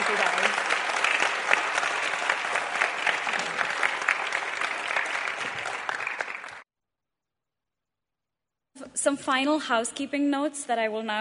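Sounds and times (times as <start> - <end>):
audience applause: 0.0 - 6.6
speech: 9.0 - 11.1.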